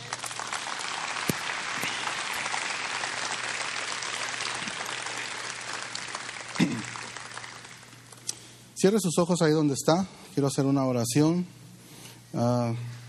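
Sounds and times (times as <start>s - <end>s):
applause: 0.0s - 8.2s
speech: 8.8s - 11.6s, 12.3s - 13.0s.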